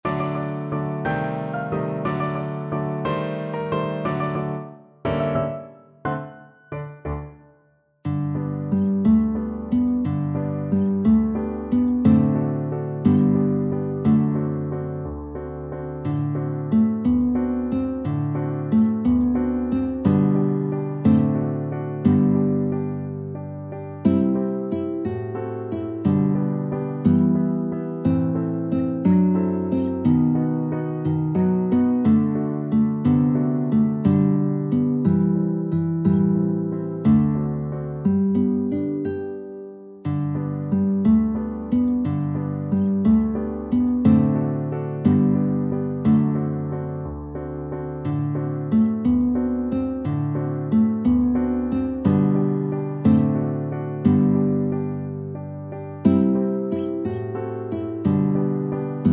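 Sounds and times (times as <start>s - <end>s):
guitar waltz: 0.0s - 7.5s, 8.1s - 59.1s.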